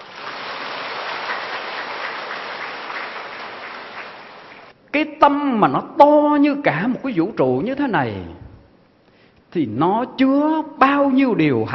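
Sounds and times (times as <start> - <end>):
audience applause: 0.0 - 4.7
speech: 5.0 - 8.4, 9.5 - 11.7.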